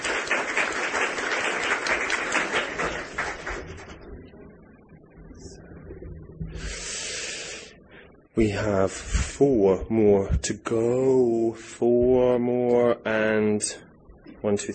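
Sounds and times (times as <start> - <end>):
audience applause: 0.0 - 4.0
speech: 8.4 - 14.7.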